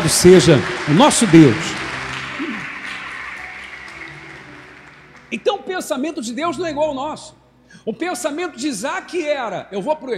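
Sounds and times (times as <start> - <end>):
audience applause: 0.0 - 5.5
speech: 0.1 - 1.8, 5.3 - 10.1.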